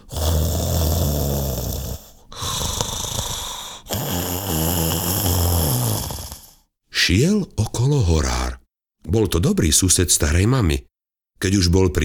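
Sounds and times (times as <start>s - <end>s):
loud snoring: 0.0s - 6.7s
speech: 7.1s - 12.0s.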